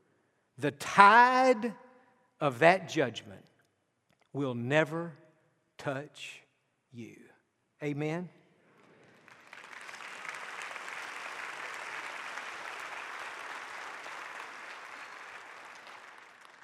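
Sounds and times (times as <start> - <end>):
speech: 0.6 - 1.8, 2.4 - 3.5, 4.4 - 5.2, 5.8 - 8.4
audience applause: 9.1 - 16.6.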